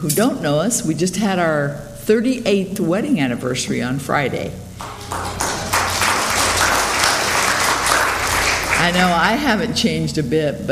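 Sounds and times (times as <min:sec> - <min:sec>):
speech: 0:00.0 - 0:05.4, 0:08.8 - 0:10.7
audience applause: 0:04.8 - 0:09.2.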